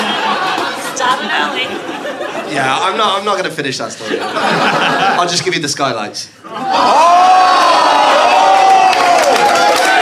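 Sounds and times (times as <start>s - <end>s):
laughter: 0.0s - 5.7s, 6.4s - 8.0s
speech: 2.5s - 7.7s
audience cheering: 6.5s - 10.0s.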